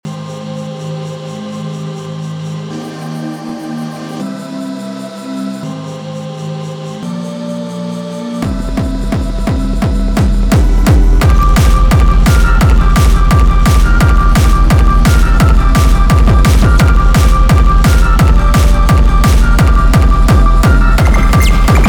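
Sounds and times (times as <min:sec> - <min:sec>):
heartbeat: 0:08.4 - 0:21.8.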